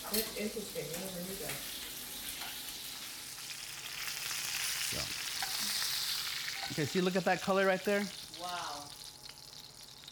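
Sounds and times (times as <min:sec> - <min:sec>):
food searing and steaming in a saute pan: 0:00.0 - 0:10.1
speech: 0:00.1 - 0:01.8, 0:06.8 - 0:08.6.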